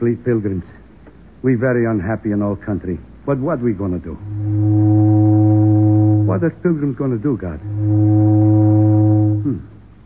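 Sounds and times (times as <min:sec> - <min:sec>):
speech: 0:00.0 - 0:00.8, 0:01.4 - 0:04.5, 0:06.3 - 0:08.2, 0:09.4 - 0:09.7
faint rumble: 0:03.6 - 0:10.0
steamboat whistle: 0:04.2 - 0:06.6, 0:07.5 - 0:09.7.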